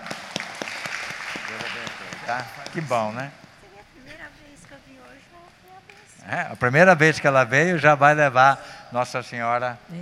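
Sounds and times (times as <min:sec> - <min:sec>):
audience applauding: 0:00.0 - 0:03.4
speech: 0:01.5 - 0:03.4, 0:05.1 - 0:10.0.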